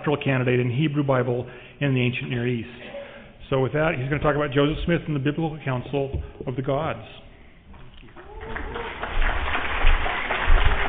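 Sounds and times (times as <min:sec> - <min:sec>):
speech: 0:00.0 - 0:07.3
audience applause: 0:08.2 - 0:10.8.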